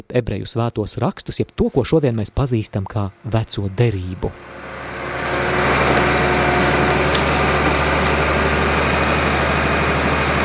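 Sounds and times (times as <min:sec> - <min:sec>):
speech: 0:00.0 - 0:04.8
bulldozer sound effect: 0:02.9 - 0:10.4.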